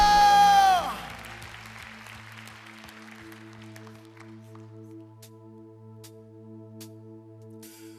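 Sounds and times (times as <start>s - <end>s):
audience applause: 0.1s - 4.7s.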